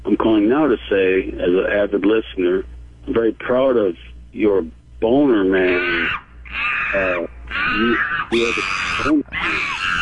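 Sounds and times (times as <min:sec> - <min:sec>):
speech: 0:00.2 - 0:06.2, 0:06.9 - 0:09.6
upset monkey screeching: 0:05.5 - 0:09.9.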